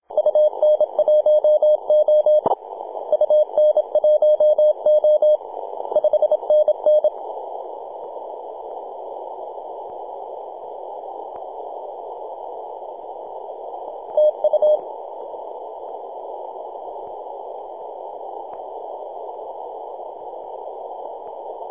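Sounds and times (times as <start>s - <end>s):
morse code tones on 28.008 MHz: 0.2s - 2.4s, 3.1s - 5.4s, 6.0s - 7.1s.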